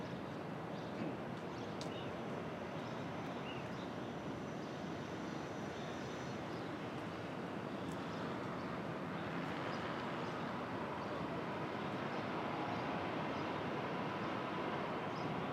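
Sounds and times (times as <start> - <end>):
traffic hum at dawn in Brooklyn: 0.1 - 15.5.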